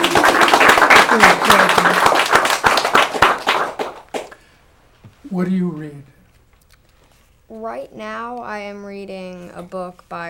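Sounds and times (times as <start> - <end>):
small group applauding: 0.0 - 4.5
speech: 7.7 - 10.2.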